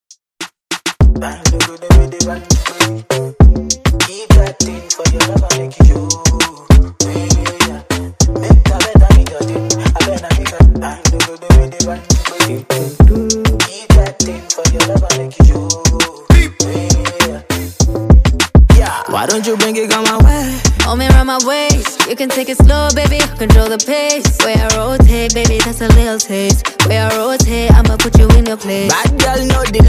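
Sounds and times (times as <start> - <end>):
Afro Top40 pop music: 0.7 - 29.8.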